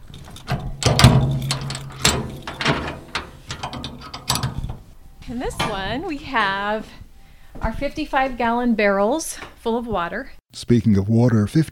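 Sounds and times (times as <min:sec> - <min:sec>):
20x8 steel shipping container doors being opened: 0:00.0 - 0:06.8
speech: 0:05.3 - 0:07.0, 0:07.6 - 0:11.7.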